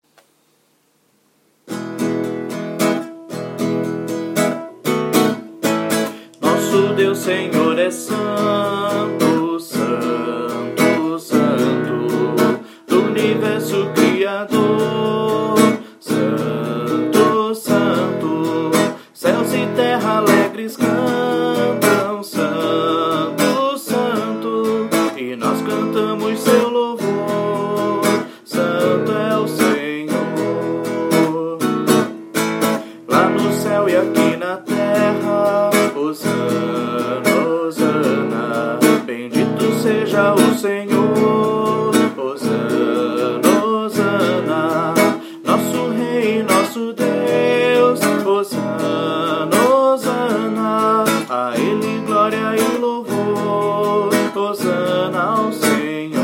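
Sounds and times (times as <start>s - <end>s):
vocals: 2.8s - 56.2s.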